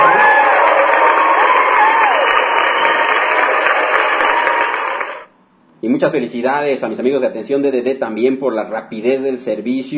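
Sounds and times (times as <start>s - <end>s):
applause and cheering: 0.0s - 5.3s
speech: 6.0s - 9.9s.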